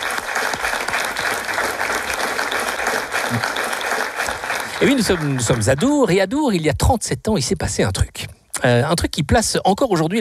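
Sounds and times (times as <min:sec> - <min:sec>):
audience applause: 0:00.0 - 0:06.2
speech: 0:04.8 - 0:10.1.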